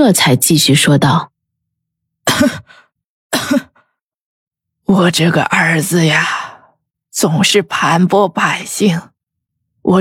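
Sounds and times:
speech: 0:00.0 - 0:01.3, 0:02.3 - 0:03.7, 0:04.9 - 0:06.4, 0:07.2 - 0:09.1
old woman coughing: 0:02.2 - 0:03.9.

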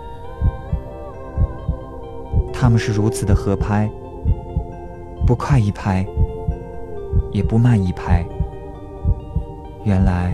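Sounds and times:
heartbeat: 0:00.4 - 0:00.8, 0:01.4 - 0:01.8, 0:02.4 - 0:02.6, 0:04.3 - 0:05.5, 0:06.2 - 0:07.6, 0:08.3 - 0:09.5
speech: 0:02.6 - 0:04.4, 0:05.3 - 0:06.2, 0:07.3 - 0:08.4, 0:09.8 - 0:10.3.

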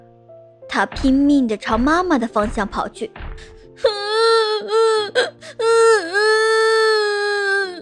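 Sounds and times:
speech: 0:00.8 - 0:06.4
child crying: 0:03.8 - 0:07.8.

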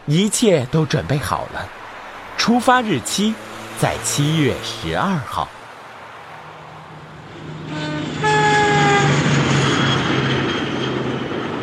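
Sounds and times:
speech: 0:00.0 - 0:01.8, 0:02.4 - 0:05.6
train rushing past: 0:00.6 - 0:11.6
train horn blast: 0:07.6 - 0:09.3.

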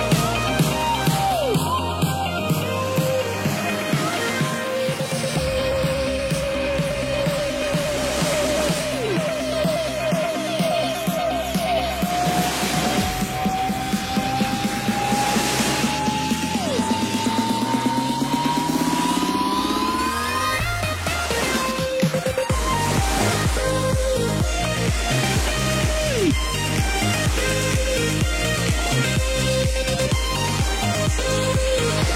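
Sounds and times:
breezy electronic music: 0:00.0 - 0:32.1
synth tone climbing in pitch: 0:00.0 - 0:32.1.

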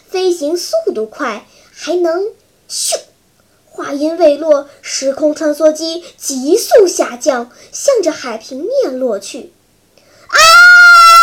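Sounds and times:
speech: 0:00.4 - 0:03.1, 0:03.8 - 0:09.6
group of people screaming: 0:10.3 - 0:11.2.

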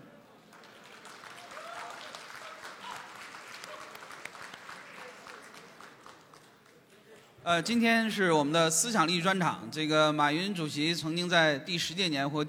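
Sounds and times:
audience applause welcoming a speaker: 0:00.2 - 0:07.0
speech: 0:07.4 - 0:12.4.

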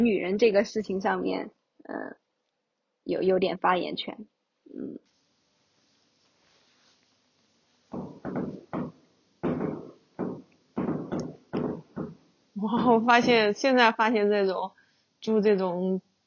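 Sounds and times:
speech: 0:00.0 - 0:02.2, 0:03.0 - 0:05.1, 0:12.6 - 0:16.1
fireworks going off outside at night: 0:07.9 - 0:12.3.

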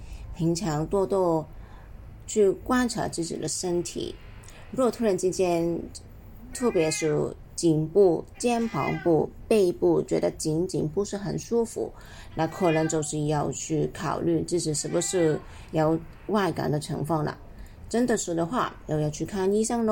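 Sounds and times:
speech: 0:00.4 - 0:01.6, 0:02.3 - 0:19.9
cat meowing: 0:06.5 - 0:07.4, 0:08.4 - 0:09.3, 0:12.5 - 0:13.2, 0:14.8 - 0:15.5.

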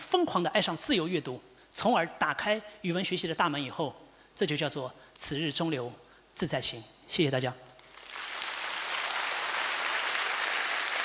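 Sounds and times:
speech: 0:00.1 - 0:07.7
audience applause: 0:07.9 - 0:11.0.

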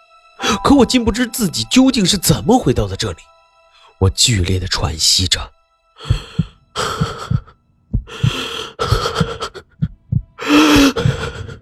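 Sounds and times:
speech: 0:00.5 - 0:03.3, 0:04.0 - 0:07.0
pounding heartbeat: 0:06.0 - 0:11.5.

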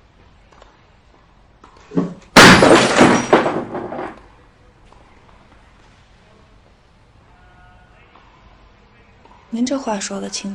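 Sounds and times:
glass shattering: 0:02.0 - 0:04.2
speech: 0:09.6 - 0:10.5.

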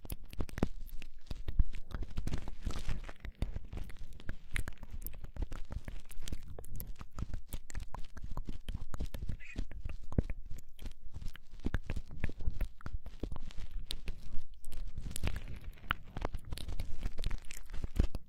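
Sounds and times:
ear cleaning and massage scratching and rubbing: 0:00.0 - 0:18.2.

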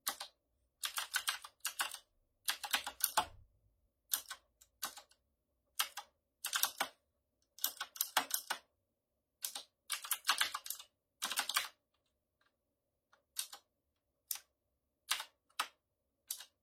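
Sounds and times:
typing on a mechanical keyboard: 0:00.0 - 0:03.4, 0:04.1 - 0:05.2, 0:05.8 - 0:07.0, 0:07.6 - 0:08.7, 0:09.4 - 0:11.8, 0:13.2 - 0:16.6.

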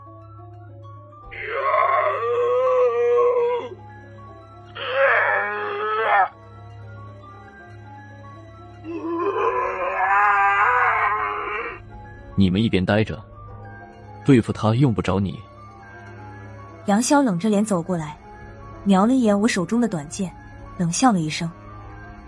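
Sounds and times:
howling wails: 0:01.3 - 0:03.8, 0:04.8 - 0:06.4, 0:08.8 - 0:11.8
speech: 0:12.4 - 0:13.3, 0:14.3 - 0:15.5, 0:16.8 - 0:18.2, 0:18.8 - 0:21.6.

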